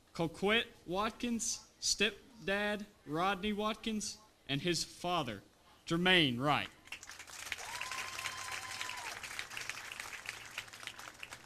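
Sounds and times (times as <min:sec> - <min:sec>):
speech: 0:00.2 - 0:06.8
crowd applause for senior football players: 0:06.9 - 0:11.4.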